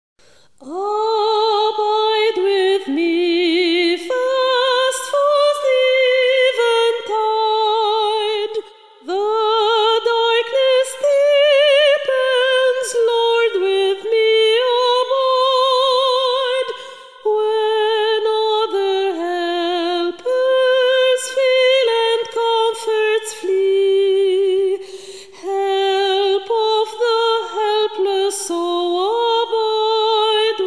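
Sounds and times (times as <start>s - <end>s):
soprano singing: 0.6s - 30.6s.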